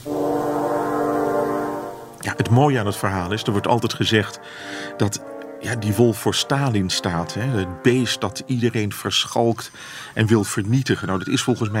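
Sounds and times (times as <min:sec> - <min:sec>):
three horns playing a theme: 0:00.0 - 0:09.1
speech: 0:02.2 - 0:11.7.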